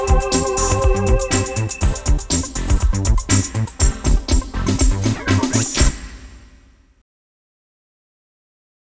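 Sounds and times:
techno music: 0.0 - 6.0.

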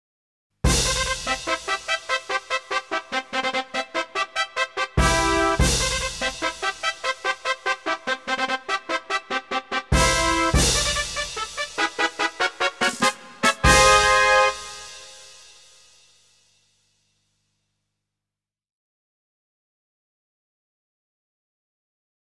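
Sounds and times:
race fanfare: 0.7 - 15.7.

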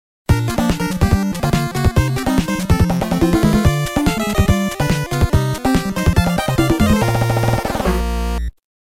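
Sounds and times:
pattern clear background music: 0.3 - 8.5.

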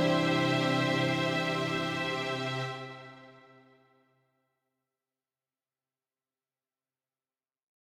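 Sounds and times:
guitar: 0.0 - 3.4.

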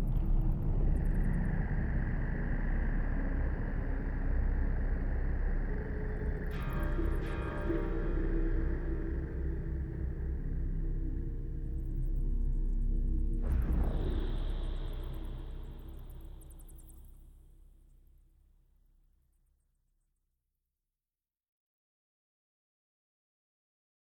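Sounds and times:
dark ambience: 0.0 - 17.8.

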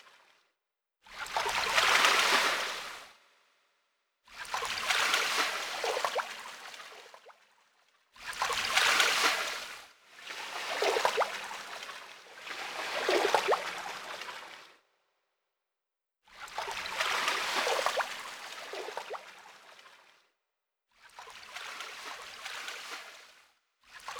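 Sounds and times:
river ambience: 1.1 - 3.3, 4.3 - 7.3, 8.2 - 14.9, 16.3 - 20.2, 21.0 - 24.1.

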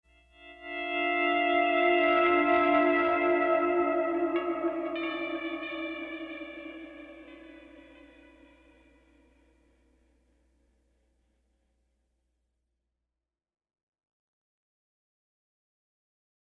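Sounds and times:
pleasant guitar playing: 0.3 - 9.2.

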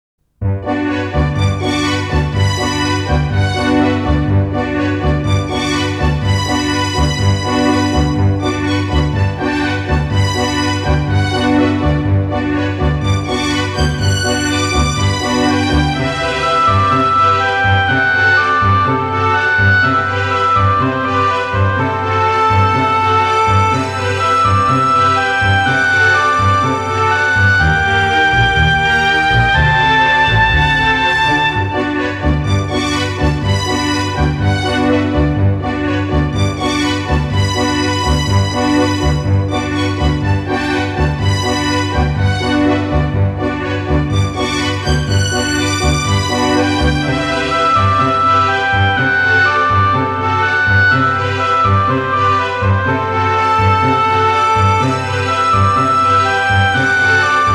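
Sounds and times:
synthesizer: 0.4 - 57.5.

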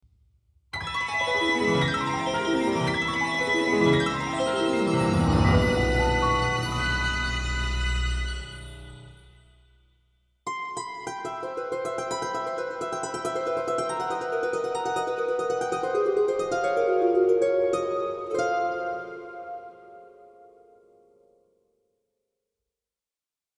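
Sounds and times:
surf harp: 1.0 - 8.9, 10.9 - 20.8.

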